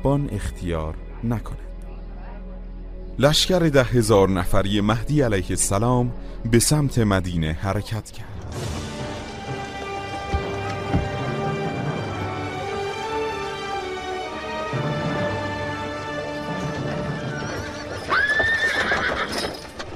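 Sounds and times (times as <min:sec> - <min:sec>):
speech: 0:00.0 - 0:01.7, 0:03.2 - 0:08.8
horse's hooves clopping: 0:08.6 - 0:19.9
horse whinnying: 0:16.2 - 0:19.8.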